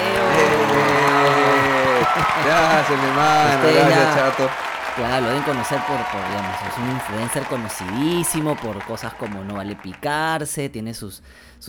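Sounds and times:
laughter: 0:00.0 - 0:04.6
applause: 0:00.0 - 0:10.6
speech: 0:02.4 - 0:11.6.

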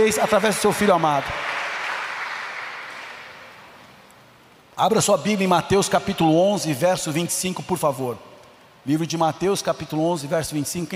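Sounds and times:
speech: 0:00.0 - 0:01.5, 0:04.8 - 0:10.9
crowd applauding: 0:00.0 - 0:03.7.

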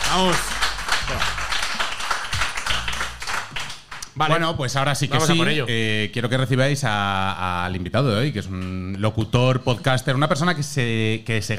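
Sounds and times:
audience applause: 0:00.0 - 0:04.2
speech: 0:00.1 - 0:00.5, 0:04.2 - 0:11.5.

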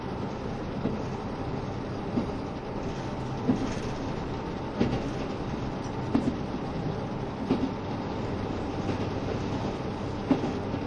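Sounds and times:
KiHa 72 Yufuin no Mori diesel train running rumble: 0:00.0 - 0:10.8
rhythmic rail-joint clacks of KiHa 72 Yufuin no Mori diesel train: 0:02.1 - 0:08.0, 0:08.7 - 0:10.8.

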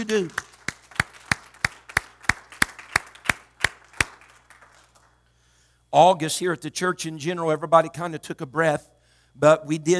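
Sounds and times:
speech: 0:00.0 - 0:00.5, 0:05.9 - 0:09.9
audience clapping hands: 0:00.0 - 0:05.3.

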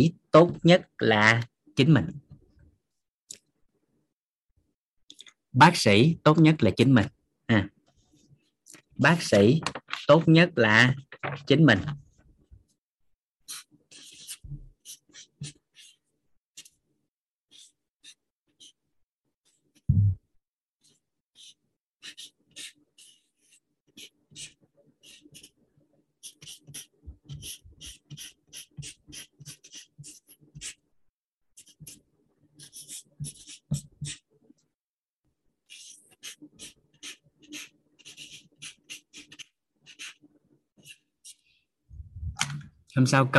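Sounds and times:
speech: 0:00.0 - 0:02.2, 0:05.6 - 0:07.8, 0:09.0 - 0:12.0, 0:43.0 - 0:43.3
handwriting strokes scratching: 0:13.5 - 0:16.8, 0:17.5 - 0:19.9, 0:20.8 - 0:25.6, 0:26.2 - 0:30.8, 0:31.6 - 0:32.0, 0:32.6 - 0:34.3, 0:35.6 - 0:41.5.

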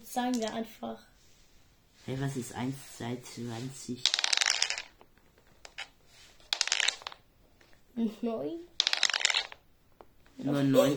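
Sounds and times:
speech: 0:00.2 - 0:01.1, 0:02.1 - 0:04.2, 0:08.0 - 0:08.7, 0:10.4 - 0:10.9
dice rattling and clattering: 0:00.3 - 0:00.7, 0:03.8 - 0:07.8, 0:08.8 - 0:10.1.

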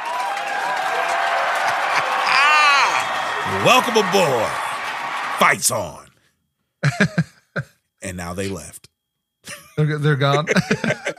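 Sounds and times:
applause: 0:00.0 - 0:02.3, 0:02.9 - 0:05.9
speech: 0:03.5 - 0:04.7, 0:05.4 - 0:06.1, 0:06.8 - 0:08.8, 0:09.8 - 0:11.1
laughter: 0:06.8 - 0:07.7, 0:09.5 - 0:11.1.

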